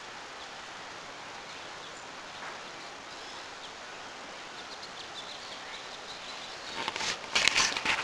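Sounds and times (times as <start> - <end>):
grosbeak birdsong: 1.3 - 7.3.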